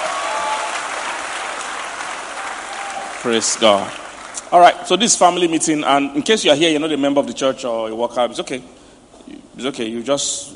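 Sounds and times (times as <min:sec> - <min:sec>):
clapping: 0:00.4 - 0:04.4
speech: 0:03.2 - 0:08.8, 0:09.6 - 0:10.5.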